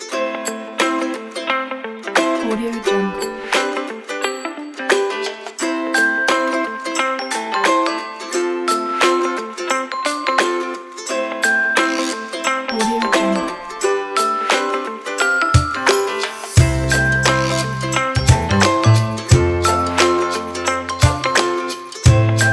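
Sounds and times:
happy ukulele guitar music: 0.0 - 22.5.

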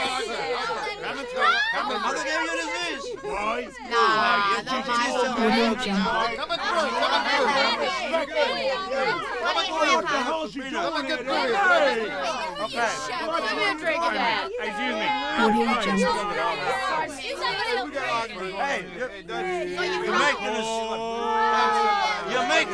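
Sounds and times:
rowdy bar conversation: 0.0 - 22.7
laughter: 5.2 - 7.8, 15.4 - 16.5
people hollering in a bar: 5.3 - 6.8, 15.4 - 16.8, 19.6 - 22.7.

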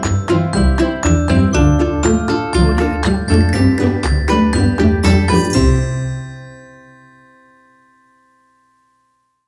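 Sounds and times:
happy fun comedy music: 0.0 - 6.8.

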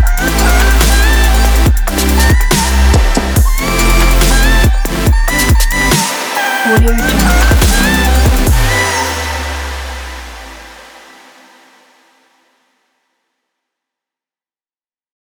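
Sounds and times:
dubstep future bass music: 0.0 - 11.2.

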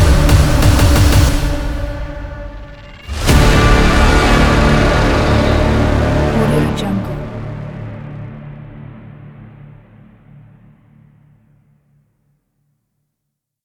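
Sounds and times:
aggressive trailer intro music: 0.0 - 10.8.

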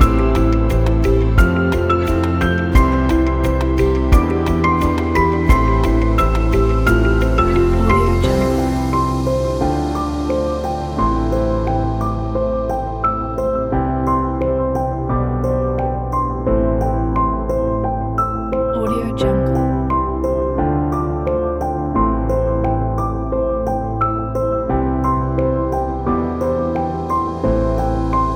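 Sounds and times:
relaxing corporate music: 0.0 - 28.3.

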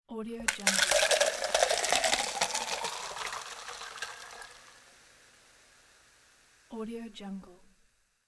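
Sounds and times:
long pitcher pour with ice: 0.5 - 6.8.

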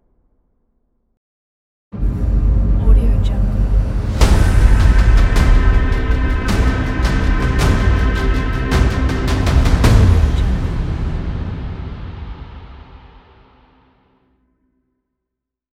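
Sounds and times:
epic logo sting: 2.0 - 13.8.

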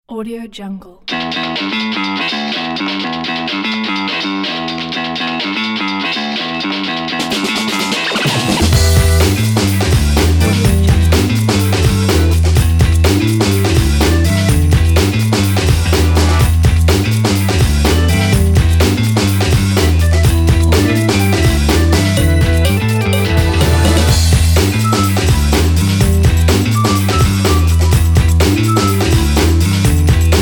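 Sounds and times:
funk music: 1.1 - 30.4.

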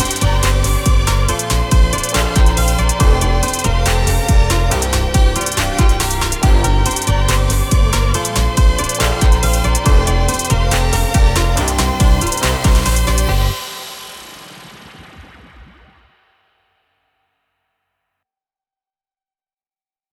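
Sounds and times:
Chinese catwalk fashion trap music: 0.0 - 15.9.

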